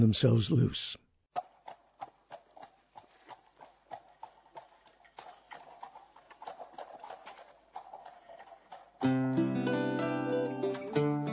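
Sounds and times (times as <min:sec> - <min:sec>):
speech: 0:00.0 - 0:01.0
horse's hooves clip-clopping: 0:01.3 - 0:11.2.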